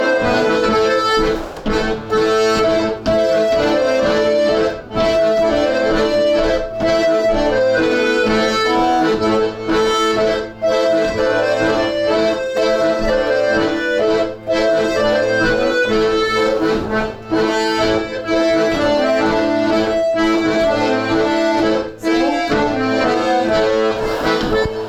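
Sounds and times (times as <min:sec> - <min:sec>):
rhythm track: 0:00.0 - 0:24.8.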